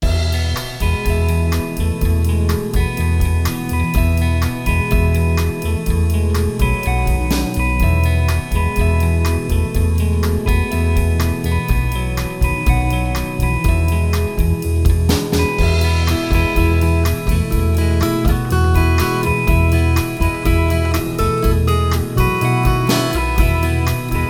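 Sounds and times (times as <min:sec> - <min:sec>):
acoustic guitar: 0:00.0 - 0:24.2.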